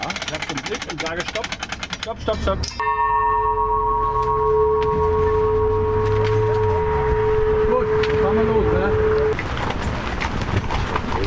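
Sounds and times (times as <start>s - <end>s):
speech: 0.6s - 3.2s
constant low rumble: 2.8s - 10.9s
horse hooves clip-clopping: 9.3s - 11.2s.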